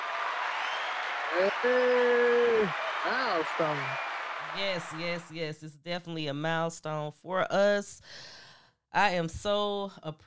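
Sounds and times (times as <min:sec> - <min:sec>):
crowd applause: 0:00.0 - 0:05.3
speech: 0:01.3 - 0:10.2.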